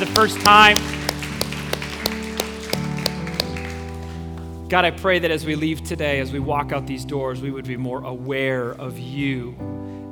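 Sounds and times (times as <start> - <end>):
speech: 0.0 - 0.9, 4.7 - 9.8
audience applauding: 0.0 - 4.4.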